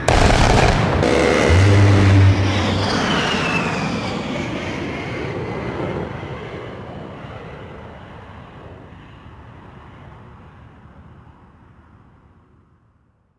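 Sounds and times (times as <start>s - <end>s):
ambience: 0.0s - 4.6s.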